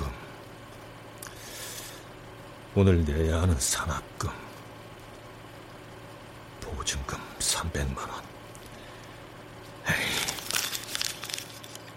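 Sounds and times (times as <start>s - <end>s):
speech: 2.8s - 4.4s, 6.8s - 8.3s
sheet of paper being crumpled: 9.9s - 11.9s.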